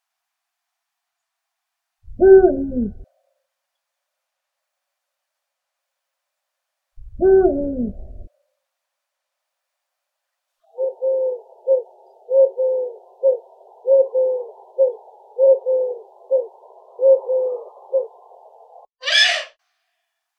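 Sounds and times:
eagle-owl Bubo bubo: 2.1 - 3.0, 7.2 - 8.3, 10.7 - 19.6.

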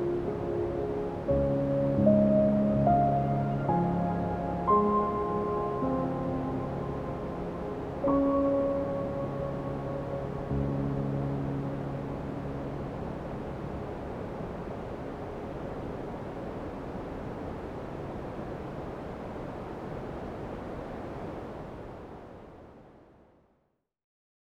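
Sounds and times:
piano: 0.0 - 16.6
white noise: 0.0 - 23.6.

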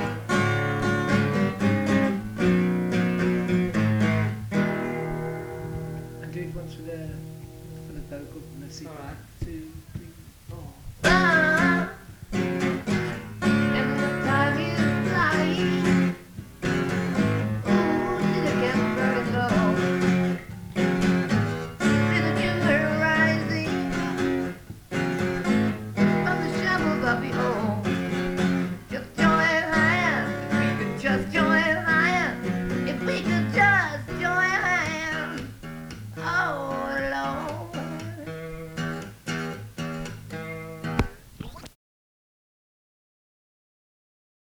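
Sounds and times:
acoustic music: 0.0 - 41.6
person singing: 10.6 - 12.1, 13.4 - 16.2, 17.6 - 20.4, 21.8 - 24.5, 26.1 - 35.5, 36.2 - 38.9.

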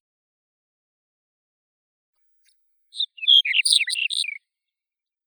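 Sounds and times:
red-headed bunting Emberiza bruniceps: 2.9 - 4.4.

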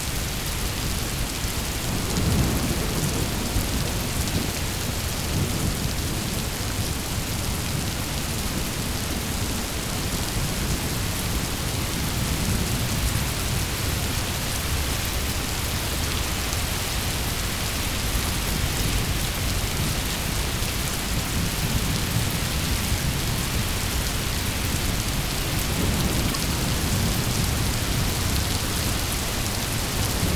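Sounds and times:
rain: 0.0 - 30.3
thunder rolling: 24.8 - 30.3.

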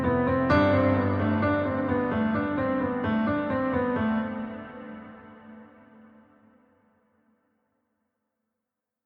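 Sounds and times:
piano piece: 0.0 - 6.7.

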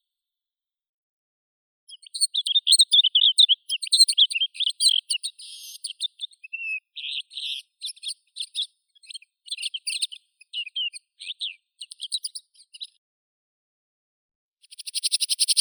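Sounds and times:
Asian desert warbler Sylvia nana singing: 2.0 - 12.4.

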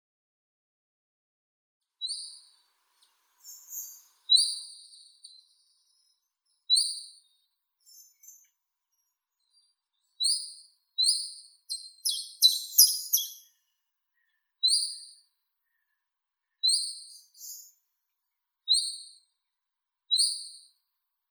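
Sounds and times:
chiffchaff Phylloscopus collybita singing: 12.0 - 13.5.

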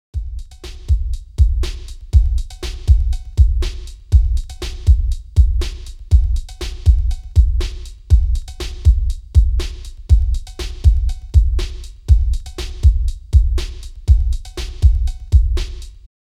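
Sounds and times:
bass beat: 0.2 - 16.1.

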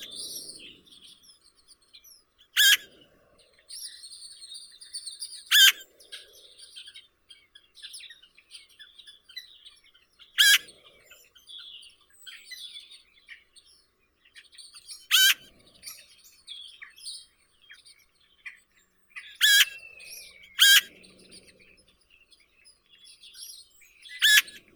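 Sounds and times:
Eurasian magpie Pica pica calling: 2.6 - 2.9, 5.5 - 5.9, 10.4 - 10.8, 15.1 - 15.5, 19.3 - 21.1, 24.1 - 24.7.

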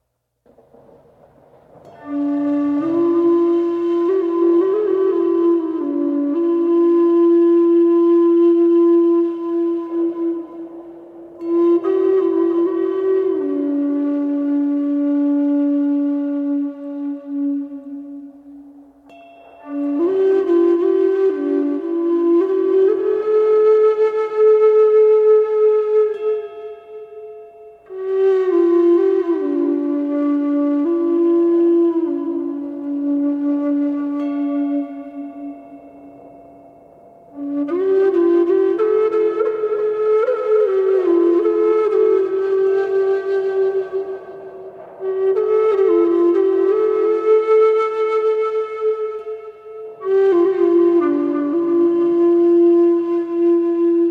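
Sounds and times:
thunder: 0.5 - 3.1, 42.9 - 47.3
Tibetan flute playing: 1.7 - 54.0.

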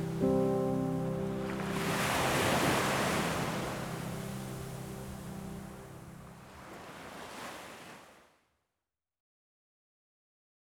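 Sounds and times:
piano: 0.0 - 6.8
ocean waves: 0.0 - 8.3.

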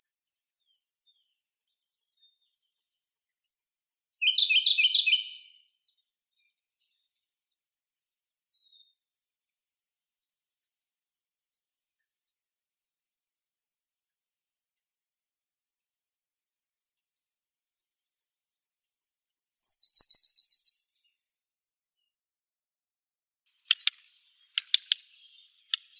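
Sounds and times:
Siberian blue robin Luscinia cyane singing: 0.0 - 12.5, 17.0 - 22.1, 23.5 - 25.9.

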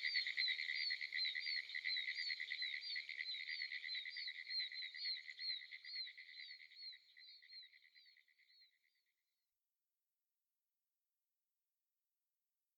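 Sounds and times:
pine woods treefrog calling: 0.0 - 8.6.

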